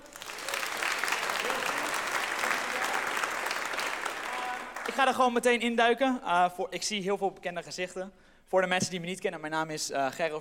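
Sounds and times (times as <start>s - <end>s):
audience applause: 0.0s - 5.2s
speech: 5.0s - 10.3s.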